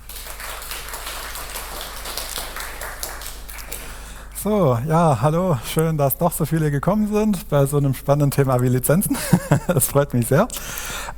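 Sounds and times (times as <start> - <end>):
crowd audience applause: 0.0 - 4.2
speech: 4.4 - 11.1
laughter: 9.0 - 10.0.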